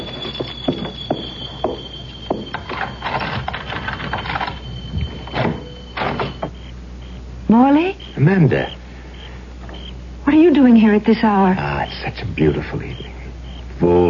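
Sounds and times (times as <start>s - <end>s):
keys rattling and scraping in a door lock: 2.5s - 6.5s
speech: 7.5s - 8.8s, 10.4s - 13.1s, 13.8s - 14.0s.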